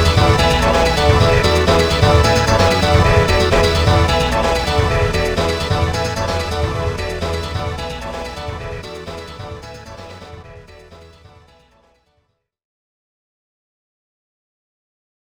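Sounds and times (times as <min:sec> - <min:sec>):
power-up background game music: 0:00.0 - 0:11.1.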